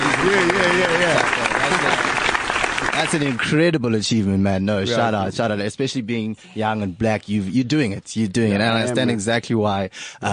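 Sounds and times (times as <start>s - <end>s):
applause: 0.0s - 3.7s
speech: 0.2s - 2.2s, 3.0s - 10.3s.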